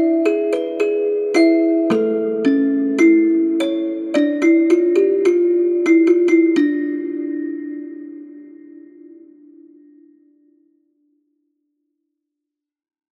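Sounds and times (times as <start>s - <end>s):
spacey kalimba: 0.0s - 9.7s.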